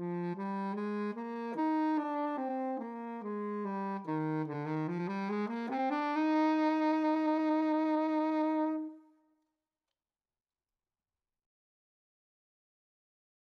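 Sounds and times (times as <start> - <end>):
tenor saxophone playing an etude: 0.0 - 9.1.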